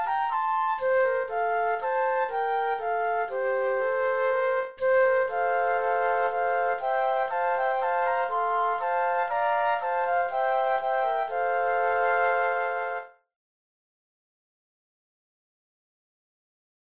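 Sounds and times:
flute trio playing a Christmas carol: 0.0s - 13.2s.

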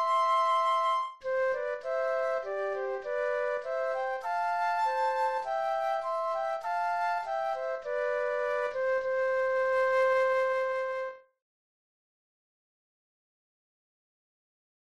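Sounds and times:
flute duet: 0.0s - 11.3s.

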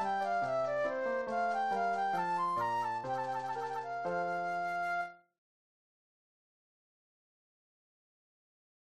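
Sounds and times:
classical march flute solo: 0.0s - 5.2s.

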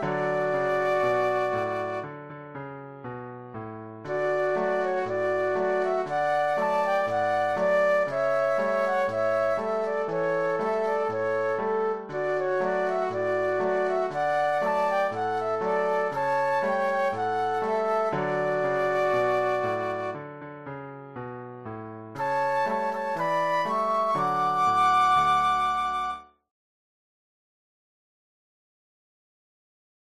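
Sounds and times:
flute duet: 0.0s - 2.3s, 4.1s - 20.4s, 22.2s - 26.4s
piano: 0.0s - 26.4s.

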